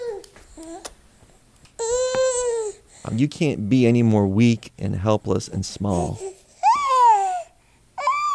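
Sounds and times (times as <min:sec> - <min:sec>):
newborn baby babbling: 0:00.0 - 0:00.9, 0:01.8 - 0:02.8, 0:05.9 - 0:08.3
speech: 0:03.0 - 0:06.3.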